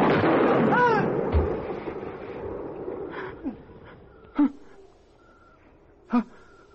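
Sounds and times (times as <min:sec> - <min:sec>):
gunshots in a staged drama scene: 0:00.0 - 0:03.1.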